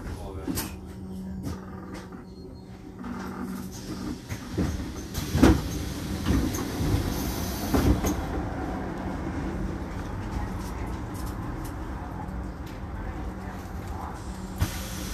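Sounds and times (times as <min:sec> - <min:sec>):
bus engine rumble: 0:00.0 - 0:15.1
road noise: 0:00.0 - 0:15.1.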